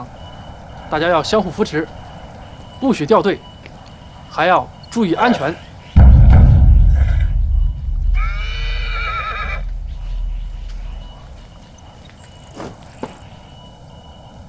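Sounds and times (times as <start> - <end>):
speech: 0.9 - 2.0, 2.8 - 3.5, 4.3 - 5.7
steady low rumble: 6.0 - 11.7
horse neighing during a troops' night march: 8.7 - 9.6.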